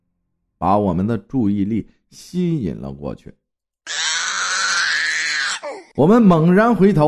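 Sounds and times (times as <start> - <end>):
speech: 0.6 - 3.4, 6.0 - 7.0
infant wailing: 3.9 - 6.0.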